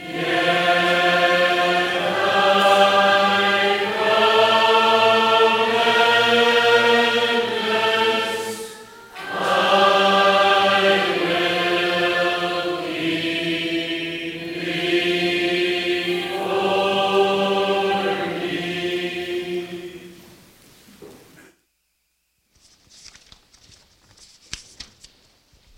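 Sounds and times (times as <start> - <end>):
person singing: 0.0 - 20.2.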